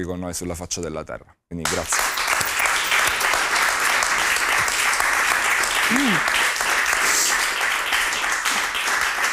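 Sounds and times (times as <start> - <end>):
speech: 0.0 - 2.2
audience applause: 1.7 - 9.3.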